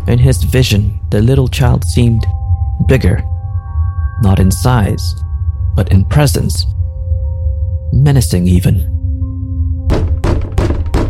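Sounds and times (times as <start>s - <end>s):
low steady hum: 0.0s - 11.0s
speech: 0.1s - 3.3s, 4.2s - 5.2s, 5.8s - 6.8s, 7.9s - 8.9s
heavy knocks on a door: 9.9s - 11.0s.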